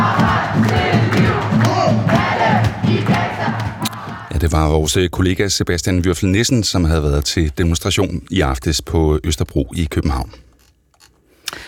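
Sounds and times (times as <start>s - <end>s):
demonstration crowd chanting a battle song: 0.0s - 4.4s
speech: 4.4s - 10.5s.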